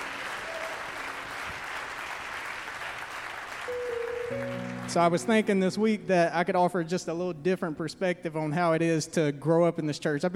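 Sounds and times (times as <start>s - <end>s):
audience clapping: 0.0s - 5.5s
speech: 3.7s - 10.3s.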